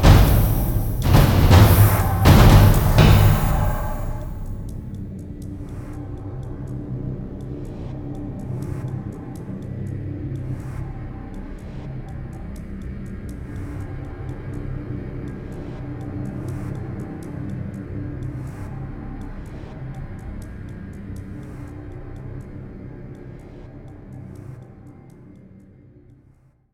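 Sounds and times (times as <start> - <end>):
music cue: 0.0 - 5.0.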